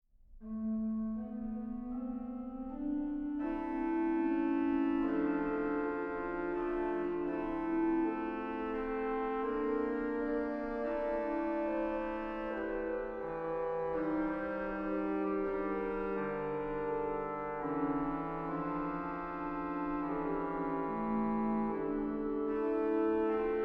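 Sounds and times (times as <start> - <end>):
organ chorale prelude: 0.4 - 23.6.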